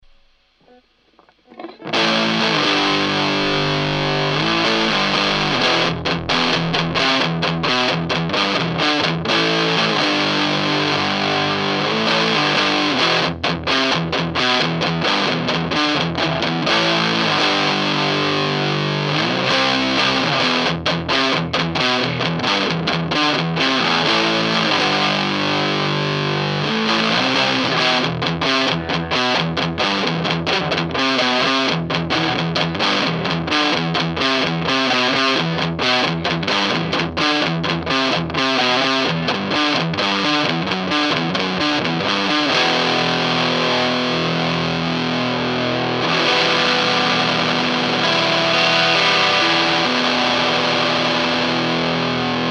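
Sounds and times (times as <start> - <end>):
guitar neck pickup signal with gain: 0.0 - 52.4.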